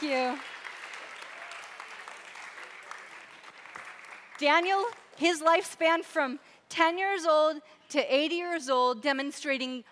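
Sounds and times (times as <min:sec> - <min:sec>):
speech: 0:00.0 - 0:00.6, 0:04.4 - 0:09.9
audience clapping: 0:00.0 - 0:05.7.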